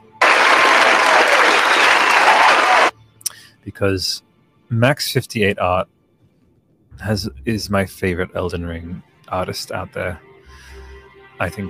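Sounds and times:
applause sound effect: 0.0 - 2.9
speech: 3.6 - 6.0, 7.0 - 10.7, 11.4 - 11.6.

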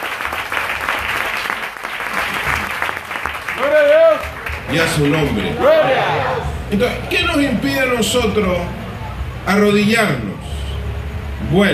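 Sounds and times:
applause: 0.0 - 5.5
speech: 4.2 - 8.8, 9.5 - 10.3, 11.4 - 11.7.

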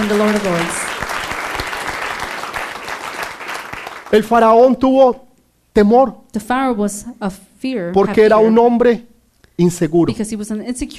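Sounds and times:
audience clapping loudly: 0.0 - 4.5
speech: 0.1 - 0.8, 4.1 - 5.2, 5.8 - 10.9.

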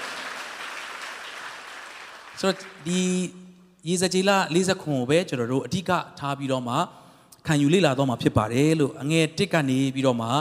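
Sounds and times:
church congregation clapping hands together: 0.0 - 3.2
speech: 2.4 - 10.3.

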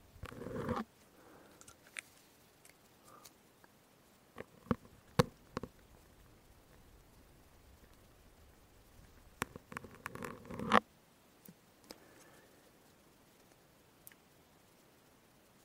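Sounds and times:
syringe sounds: 0.2 - 0.9, 9.4 - 10.8.

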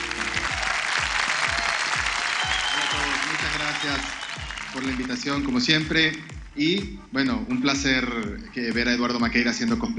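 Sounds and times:
applause: 0.0 - 6.6
speech: 3.8 - 9.9.

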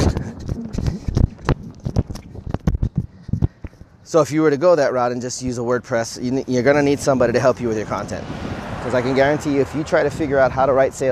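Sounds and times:
footsteps of someone running across a road: 0.0 - 4.0
speech: 4.1 - 11.0.

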